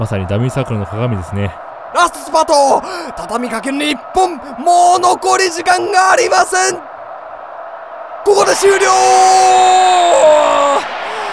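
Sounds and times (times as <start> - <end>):
speech: 0.0 - 6.9, 8.2 - 11.0
crowd cheering and applauding in a competition venue: 0.1 - 11.3
shrill whistle-like tones: 1.6 - 11.3.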